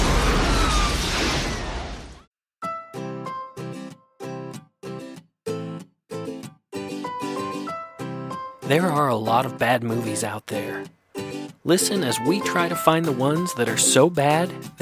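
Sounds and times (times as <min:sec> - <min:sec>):
grenade explosion: 0:00.0 - 0:02.3
speech: 0:08.7 - 0:11.0, 0:11.6 - 0:14.7
short punchy musical chord stabs: 0:11.2 - 0:13.4.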